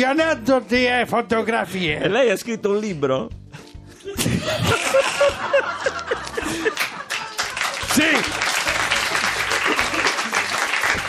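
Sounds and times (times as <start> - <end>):
speech: 0.0 - 7.0, 7.9 - 8.7
laughter: 4.0 - 11.0
studio audience clapping: 5.9 - 11.0.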